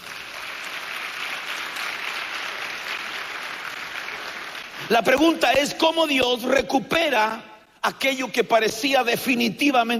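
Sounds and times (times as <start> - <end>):
audience applause: 0.0 - 4.9
speech: 4.9 - 9.9.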